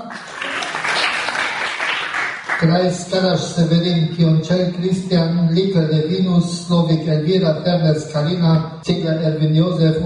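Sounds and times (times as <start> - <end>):
crowd applauding: 0.1 - 2.8
speech: 2.6 - 10.0.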